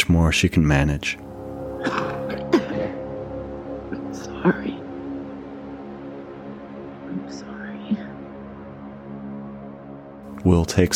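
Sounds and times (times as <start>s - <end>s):
speech: 0.0s - 2.0s, 10.4s - 10.9s
steady low droning tone: 1.2s - 10.9s
wet rasping cough: 1.8s - 3.1s.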